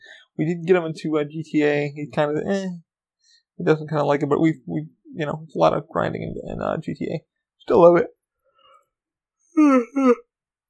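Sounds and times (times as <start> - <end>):
speech: 0.4 - 2.8, 3.6 - 8.2, 9.6 - 10.2
person yawning: 9.5 - 10.3.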